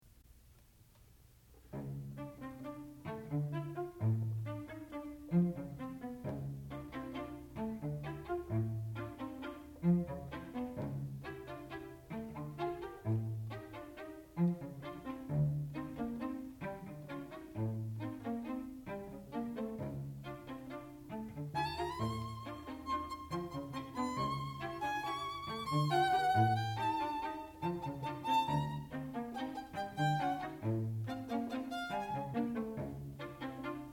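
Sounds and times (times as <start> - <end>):
string quartet playing: 1.6 - 33.9.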